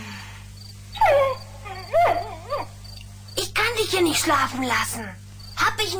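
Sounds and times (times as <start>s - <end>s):
cartoon wolf cub howling: 0.9s - 2.8s
speech: 4.0s - 5.3s, 5.8s - 5.9s.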